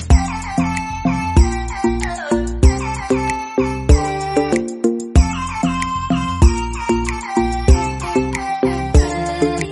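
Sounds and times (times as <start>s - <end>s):
flute ringtone: 0.1s - 9.7s.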